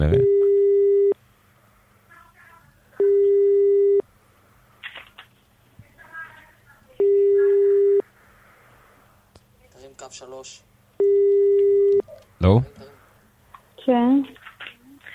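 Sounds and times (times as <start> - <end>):
speech: 0.0 - 0.3, 10.2 - 10.8, 12.4 - 12.8
telephone ringback tone: 0.1 - 1.2, 3.0 - 4.0, 7.0 - 8.0, 11.0 - 12.0.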